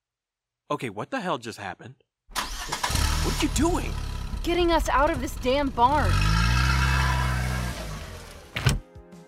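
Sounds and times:
speech: 0.7s - 2.0s, 2.7s - 6.3s
black SUV engine rumble driving away: 2.4s - 8.8s.

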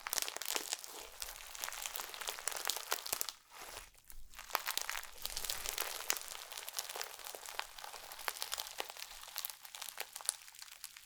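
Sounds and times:
slime being squished and stretched: 0.0s - 11.0s.

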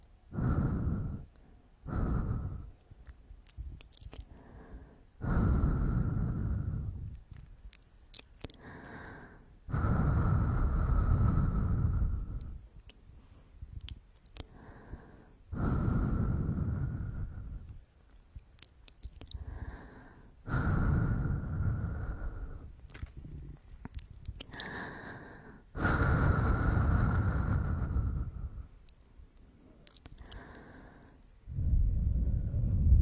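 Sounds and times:
person breathing and gasping: 0.3s - 2.8s, 3.9s - 7.2s, 8.4s - 12.6s, 14.3s - 17.7s, 19.2s - 28.8s, 29.6s - 32.9s.

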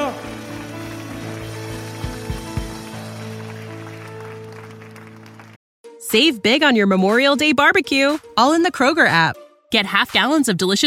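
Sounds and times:
audience applause: 0.0s - 5.6s
speech: 6.1s - 10.8s.

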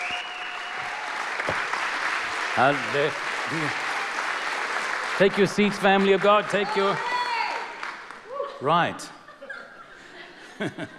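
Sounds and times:
audience applauding to welcome a speaker: 0.0s - 8.4s
speech: 2.6s - 3.8s, 5.2s - 7.1s, 8.6s - 9.2s, 10.6s - 10.9s
laughter: 8.4s - 10.9s.

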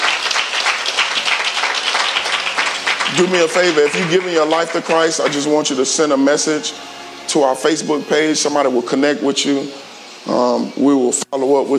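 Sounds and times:
audience hand clapping: 0.0s - 5.8s
speech: 3.2s - 11.7s.

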